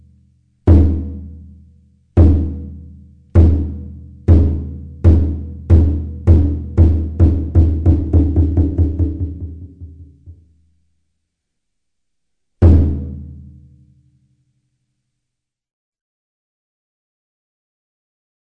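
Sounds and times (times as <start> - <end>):
taiko drums: 0.7 - 1.6, 2.2 - 10.5, 12.6 - 13.5.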